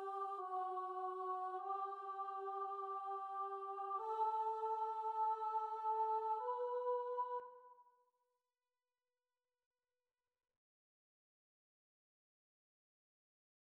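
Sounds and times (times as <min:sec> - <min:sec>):
choir singing: 0:00.0 - 0:07.7.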